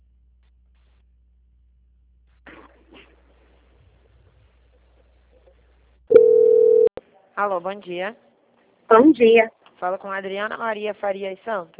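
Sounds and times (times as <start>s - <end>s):
steady telephone tone while a call is transferred: 6.1s - 6.9s
speech: 7.4s - 8.3s, 8.9s - 11.7s.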